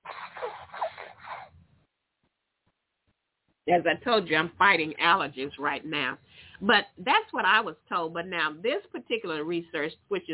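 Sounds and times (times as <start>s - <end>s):
person blowing nose: 0.0s - 1.6s
speech: 3.7s - 10.3s.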